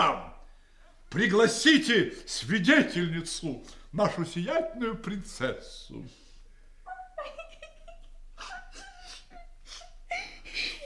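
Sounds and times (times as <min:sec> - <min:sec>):
speech: 0:01.1 - 0:06.2
woman crying and whimpering: 0:06.9 - 0:10.8.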